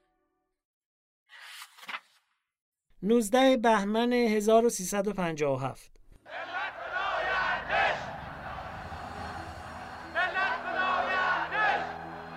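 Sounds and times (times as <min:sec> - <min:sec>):
speech: 0:03.0 - 0:05.9
large crowd chanting a protest slogan: 0:06.2 - 0:12.3.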